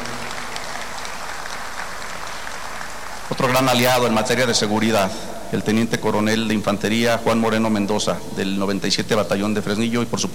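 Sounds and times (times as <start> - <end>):
audience applause at a state government security event: 0.0 - 4.5
speech: 3.3 - 10.3.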